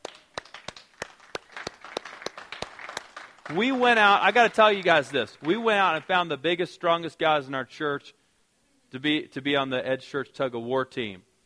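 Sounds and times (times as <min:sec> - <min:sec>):
audience applause: 0:00.0 - 0:06.1
speech: 0:03.5 - 0:08.2, 0:08.9 - 0:11.3.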